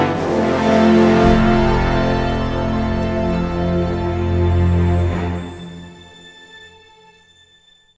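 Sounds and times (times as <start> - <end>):
transition sound: 0.2 - 6.1.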